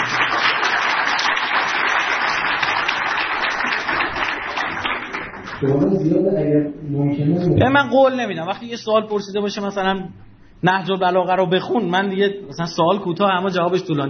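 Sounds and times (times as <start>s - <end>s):
hands clapping in steady applause: 0.0s - 5.6s
speech: 5.6s - 14.0s.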